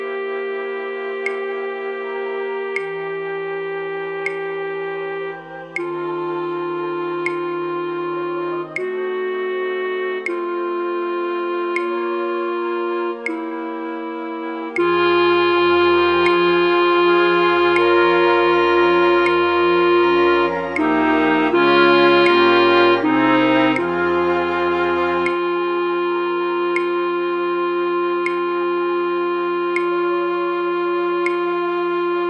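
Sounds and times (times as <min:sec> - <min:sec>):
flute orchestra playing: 0:00.0 - 0:32.2.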